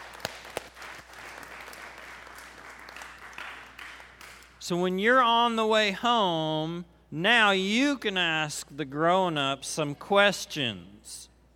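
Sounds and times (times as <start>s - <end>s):
crowd applauding: 0.0s - 4.6s
speech: 4.6s - 11.3s.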